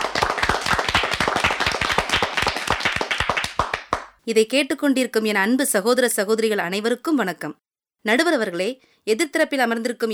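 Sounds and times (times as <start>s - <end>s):
audience clapping hands: 0.0s - 4.2s
speech: 4.3s - 10.1s.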